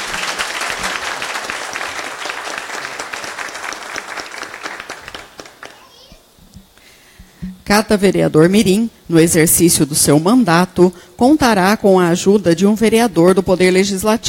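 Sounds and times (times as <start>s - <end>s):
audience applause: 0.0s - 6.1s
speech: 7.7s - 14.2s.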